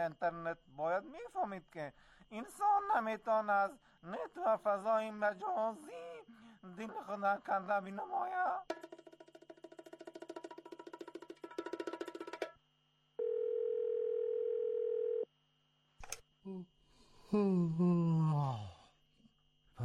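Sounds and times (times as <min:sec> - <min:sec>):
speech: 0:00.0 - 0:08.7, 0:16.4 - 0:18.8
long steady phone tone: 0:13.2 - 0:15.3
telephone ringing with no answer: 0:13.2 - 0:15.3
person sighing: 0:16.5 - 0:19.0.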